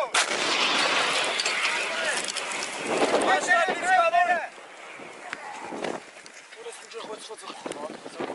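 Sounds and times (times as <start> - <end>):
artillery fire during night clashes: 0.2 - 6.1
long rumbling crackling roar: 0.2 - 8.2.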